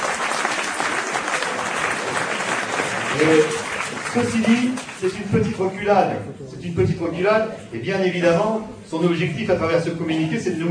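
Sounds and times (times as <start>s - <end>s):
audience applause: 0.0s - 5.1s
speech: 3.2s - 10.7s.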